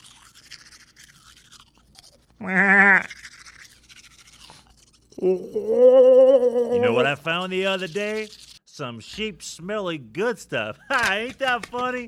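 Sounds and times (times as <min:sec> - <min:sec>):
brushing teeth with a toothbrush: 0:00.0 - 0:05.6, 0:06.7 - 0:08.6
speech: 0:02.4 - 0:02.8, 0:05.2 - 0:12.0.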